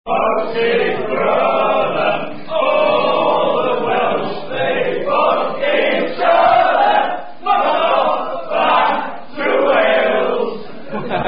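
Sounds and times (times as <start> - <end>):
rugby crowd chant: 0.1 - 11.2
laughter: 10.2 - 11.2.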